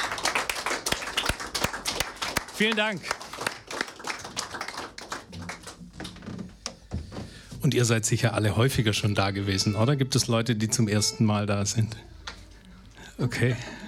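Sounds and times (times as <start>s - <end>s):
audience applause: 0.0s - 6.2s
speech: 2.6s - 3.2s, 7.6s - 12.1s, 13.2s - 13.8s.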